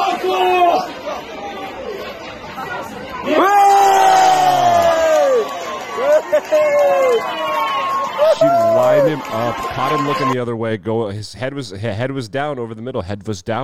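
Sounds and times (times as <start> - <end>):
sustained group yells: 0.0 - 0.9, 3.2 - 10.4
stadium crowd jeering and shouting: 0.0 - 10.4
speech: 8.3 - 13.6.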